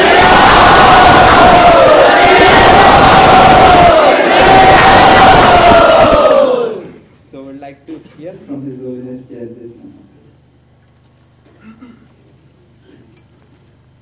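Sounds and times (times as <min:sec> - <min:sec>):
large crowd chanting at a religious gathering: 0:00.0 - 0:07.0
speech: 0:10.7 - 0:11.4.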